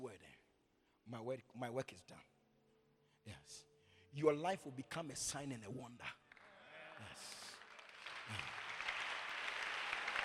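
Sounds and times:
speech: 1.1 - 2.4, 3.2 - 6.2, 7.0 - 7.4, 8.3 - 8.6
crowd applause: 6.4 - 10.2.

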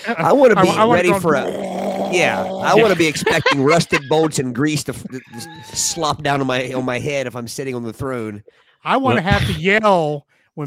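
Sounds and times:
laughter: 0.0 - 1.5, 2.2 - 7.3
speech: 0.0 - 10.6
voice imitating a bathroom exhaust fan: 0.6 - 3.2.

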